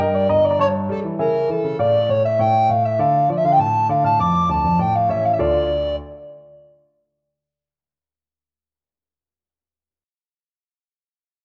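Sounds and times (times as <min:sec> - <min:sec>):
alto recorder piece: 0:00.0 - 0:06.8.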